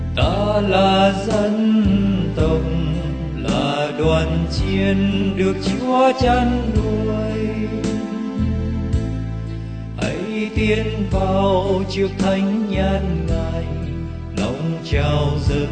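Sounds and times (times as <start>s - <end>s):
soprano singing: 0.2s - 8.6s, 10.0s - 15.7s.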